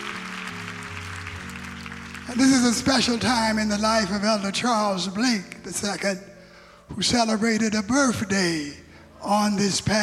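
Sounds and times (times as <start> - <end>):
audience clapping: 0.0 - 4.2
sustained low organ chords: 0.0 - 10.0
speech: 2.3 - 6.3, 6.9 - 10.0.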